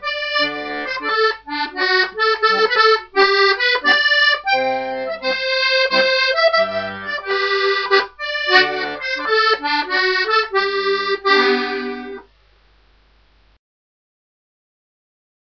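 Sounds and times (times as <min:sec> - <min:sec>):
Swedish polska folk dance tune: 0:00.0 - 0:12.3.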